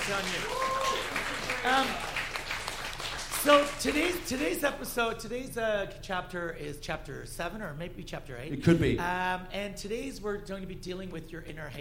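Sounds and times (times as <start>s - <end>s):
round of applause: 0.0s - 4.5s
speech: 0.1s - 2.1s, 3.4s - 11.7s.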